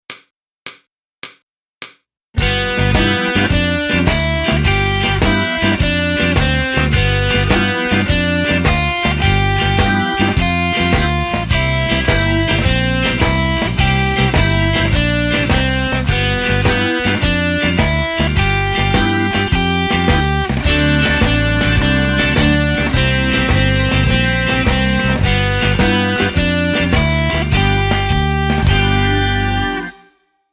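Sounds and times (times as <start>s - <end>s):
blues music: 2.4s - 30.2s.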